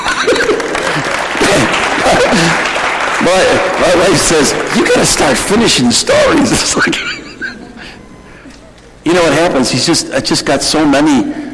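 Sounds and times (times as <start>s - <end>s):
audience applauding: 0.0s - 6.7s
laughter: 0.0s - 8.7s
speech: 3.2s - 7.2s, 9.0s - 11.5s.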